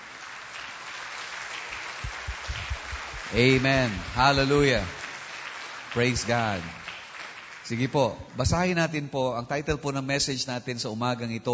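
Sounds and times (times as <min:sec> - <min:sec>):
church congregation applauding during a morning service: 0:00.0 - 0:08.6
heavier low thumps: 0:02.0 - 0:05.0
speech: 0:03.3 - 0:05.0, 0:06.0 - 0:06.8, 0:07.7 - 0:11.5.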